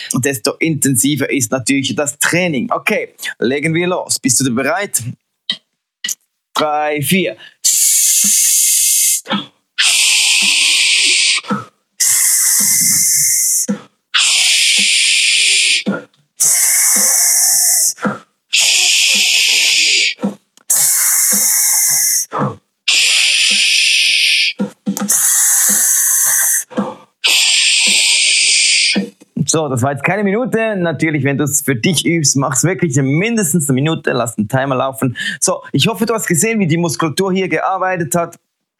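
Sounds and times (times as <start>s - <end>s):
speech: 0.1s - 5.2s, 6.6s - 8.7s, 29.5s - 38.4s
quick breaths: 7.4s - 29.2s, 35.2s - 35.4s
voice making rhythmic sch hisses in breathing exercise: 7.6s - 29.1s.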